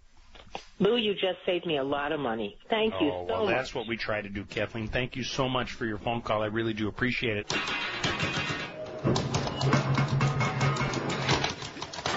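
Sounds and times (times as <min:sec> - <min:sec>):
speech: 0:00.8 - 0:08.4
noisy plumbing rattling and knocking after turning on water: 0:07.6 - 0:12.0.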